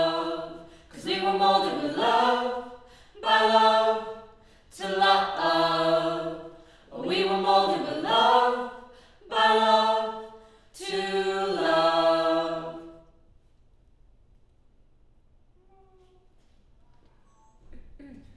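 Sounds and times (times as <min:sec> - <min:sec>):
choir singing: 0:00.0 - 0:13.2.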